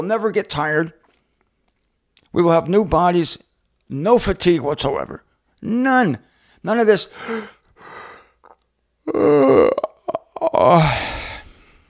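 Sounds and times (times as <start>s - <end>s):
speech: 0.0s - 1.0s, 2.3s - 7.6s, 9.1s - 11.2s
person yawning: 9.0s - 11.6s.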